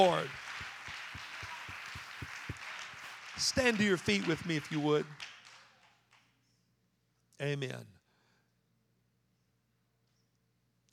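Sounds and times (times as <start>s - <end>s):
speech: 0.0s - 0.4s, 3.4s - 5.3s, 7.4s - 8.0s
faint low thumps in a regular beat: 0.0s - 4.8s
crowd applause: 0.0s - 6.0s.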